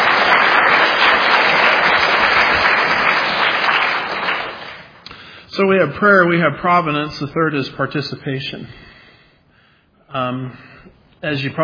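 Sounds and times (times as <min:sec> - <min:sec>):
audience applause: 0:00.0 - 0:05.0
speech: 0:05.6 - 0:08.9, 0:10.1 - 0:11.6.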